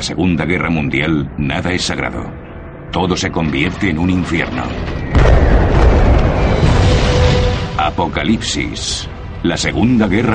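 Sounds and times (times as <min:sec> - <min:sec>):
speech: 0:00.0 - 0:05.8, 0:07.8 - 0:10.3
heavy explosions from Allied bombs on a monastery in the Second World War: 0:04.4 - 0:09.4.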